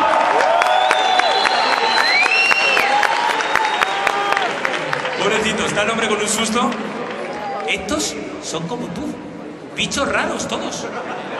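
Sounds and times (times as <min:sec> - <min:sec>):
shouted cheers: 0:00.0 - 0:05.2
crowd clapping: 0:00.0 - 0:07.9
whistles: 0:00.6 - 0:04.0
speech: 0:05.8 - 0:07.0, 0:07.7 - 0:11.3
laughter: 0:10.4 - 0:11.3.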